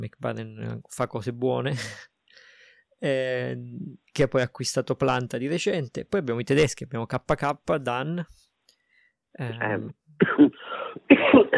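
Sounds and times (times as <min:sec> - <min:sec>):
speech: 0:00.0 - 0:02.1, 0:03.0 - 0:08.4, 0:09.4 - 0:10.7
sneeze: 0:10.3 - 0:11.5.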